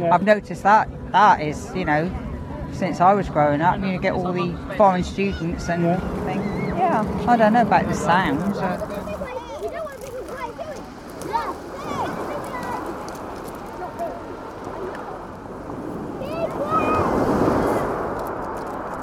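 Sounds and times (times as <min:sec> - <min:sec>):
speech: 0:00.0 - 0:09.0
sea waves lapping: 0:00.0 - 0:19.0.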